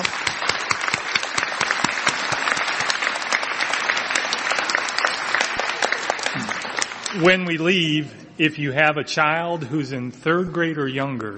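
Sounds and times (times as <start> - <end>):
audience applause: 0.0 - 7.8
speech: 7.2 - 11.3.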